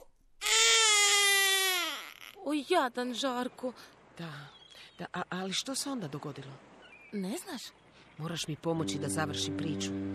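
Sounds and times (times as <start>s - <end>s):
baby crying: 0.4s - 2.5s
speech: 2.5s - 10.1s.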